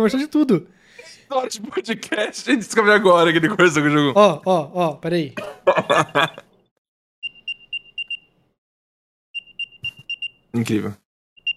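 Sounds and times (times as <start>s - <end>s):
speech: 0.0s - 6.5s, 10.6s - 11.0s
laughter: 1.0s - 4.2s, 5.4s - 6.5s
AirTag tracker beep sound: 7.2s - 8.3s, 9.4s - 10.4s, 11.4s - 11.5s.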